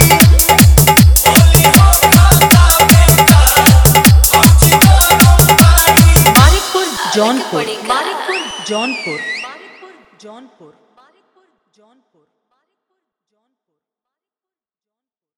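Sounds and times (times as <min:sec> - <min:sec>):
dholak bass dance mix: 0:00.0 - 0:09.7.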